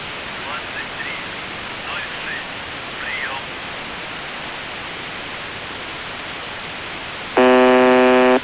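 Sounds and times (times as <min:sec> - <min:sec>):
USB message buzzer: 0:07.4 - 0:08.4.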